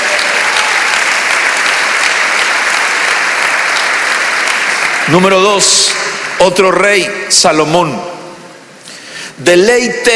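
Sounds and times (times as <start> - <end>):
audience applauding: 0.0 - 6.8
speech: 5.1 - 8.1, 9.4 - 10.1.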